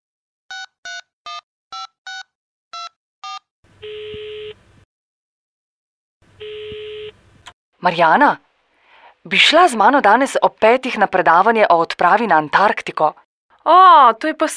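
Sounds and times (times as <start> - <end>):
telephone number being dialed with DTMF touch-tone beeps: 0.5 - 4.6, 6.4 - 7.1
speech: 7.8 - 8.4, 9.2 - 14.5.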